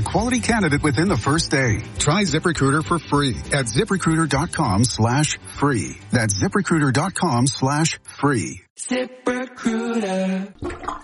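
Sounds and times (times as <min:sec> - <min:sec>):
speech: 0:00.1 - 0:11.0
plunger working a clogged sink drain: 0:10.6 - 0:11.0.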